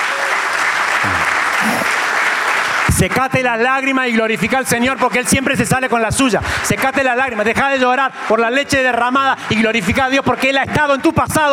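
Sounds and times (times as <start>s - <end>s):
strong applause from audience: 0.0s - 4.0s
speech: 3.0s - 11.5s.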